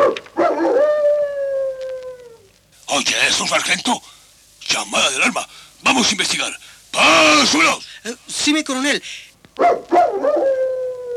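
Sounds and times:
dog barking: 0.0 - 0.9, 9.6 - 10.6
dog howling: 0.4 - 2.5, 9.6 - 11.1
speech: 3.3 - 10.6.

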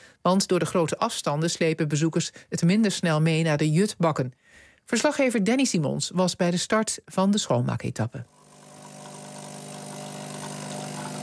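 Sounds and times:
speech: 0.2 - 8.4
coffee maker percolating in a forest ranger's hut at De Kwade Hoek: 8.3 - 11.2.

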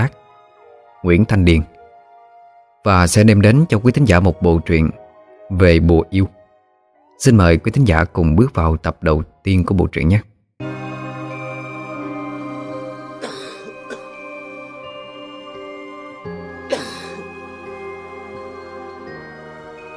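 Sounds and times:
speech: 0.0 - 0.2, 1.0 - 1.8, 2.8 - 6.4, 7.2 - 10.3
rapid dry coughing: 13.2 - 14.2, 16.7 - 17.3.

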